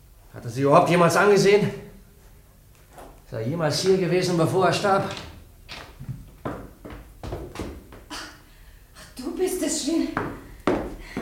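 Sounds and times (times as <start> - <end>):
speech: 0.4 - 1.9, 3.3 - 5.3
heavy footsteps in an empty room: 5.0 - 8.3, 10.0 - 11.1.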